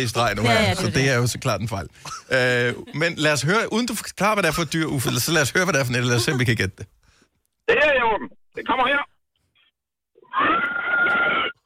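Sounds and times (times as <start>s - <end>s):
speech: 0.0s - 7.0s, 7.7s - 9.1s
pig squealing: 10.2s - 11.6s.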